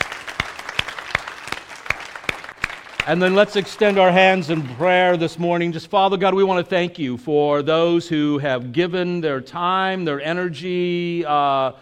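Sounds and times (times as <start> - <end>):
church congregation applause honouring teachers: 0.0 - 5.5
speech: 3.1 - 11.8.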